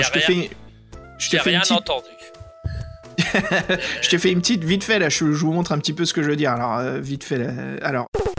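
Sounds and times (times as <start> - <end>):
speech: 0.0 - 0.6, 1.2 - 2.2, 3.4 - 8.2
NES video game soundtrack chiptune music: 1.2 - 5.3
laughter: 2.6 - 4.4.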